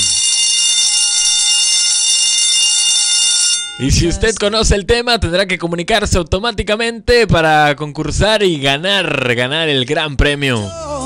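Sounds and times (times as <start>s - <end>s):
radio contest buzzer: 0.0s - 4.0s
speech: 3.8s - 10.8s.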